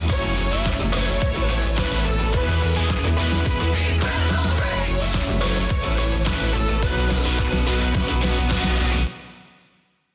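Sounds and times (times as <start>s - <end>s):
theme music: 0.0s - 9.6s.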